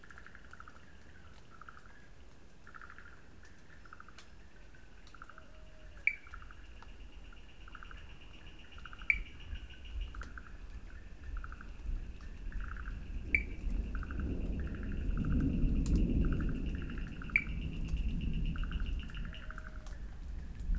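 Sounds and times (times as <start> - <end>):
Wood Frogs in Sri Lanka: 0.0 - 20.7
thunder in Sri Lanka: 11.7 - 20.7.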